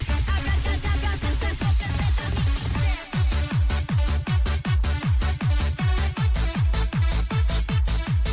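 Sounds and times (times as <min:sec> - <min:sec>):
máquina music with pounding hardcore kick drums: 0:00.0 - 0:08.3.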